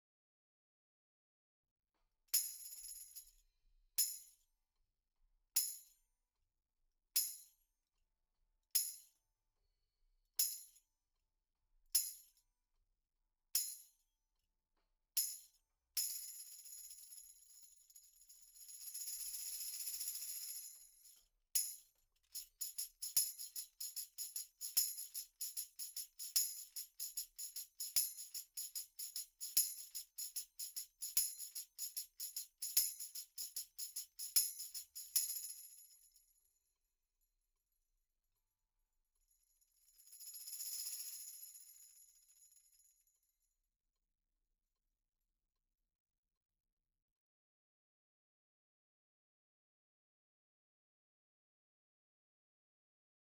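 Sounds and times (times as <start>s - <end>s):
tambourine: 2.3s - 3.4s, 4.0s - 4.4s, 5.6s - 6.0s, 7.2s - 7.6s, 8.8s - 9.1s, 10.4s - 10.8s, 12.0s - 12.4s, 13.6s - 13.9s, 15.2s - 36.5s, 39.2s - 43.4s.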